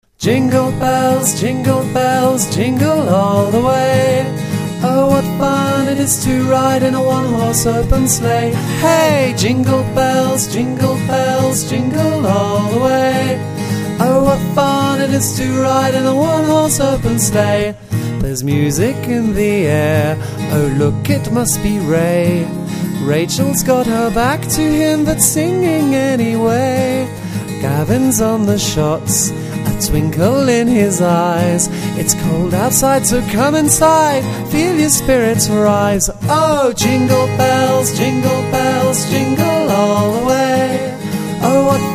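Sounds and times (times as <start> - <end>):
Christmas song: 0.0 - 41.9.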